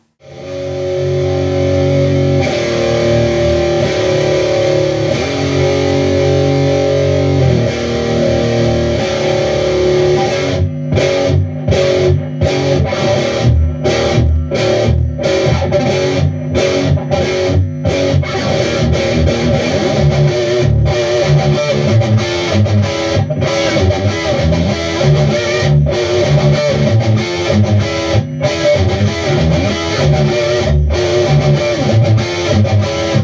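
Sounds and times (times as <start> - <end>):
heavy distorted electric guitar riff: 0.0 - 33.2.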